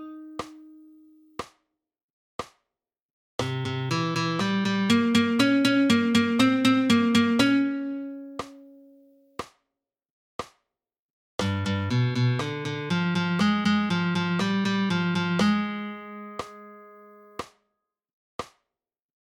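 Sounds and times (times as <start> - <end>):
flamenco guitar alzapua: 0.0 - 0.9, 3.4 - 8.8, 11.4 - 17.1.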